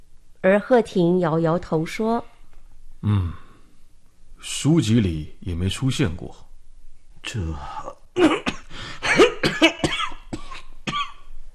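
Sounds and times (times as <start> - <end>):
speech: 0.4 - 2.3, 3.0 - 3.4, 4.4 - 6.4, 7.2 - 8.4
violent coughing: 8.2 - 11.3.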